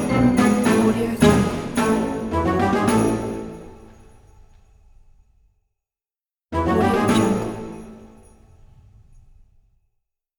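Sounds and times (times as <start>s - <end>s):
comedy music: 0.0s - 3.8s, 6.6s - 7.8s.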